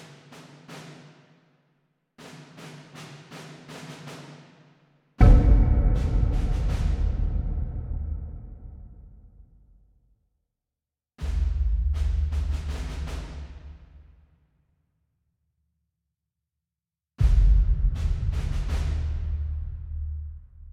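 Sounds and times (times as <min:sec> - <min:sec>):
militant drums: 0:02.2 - 0:04.5, 0:05.2 - 0:09.2, 0:11.2 - 0:13.9, 0:17.2 - 0:20.1.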